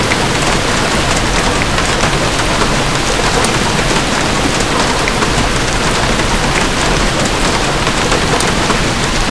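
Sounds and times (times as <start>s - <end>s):
rain: 0.0s - 9.2s.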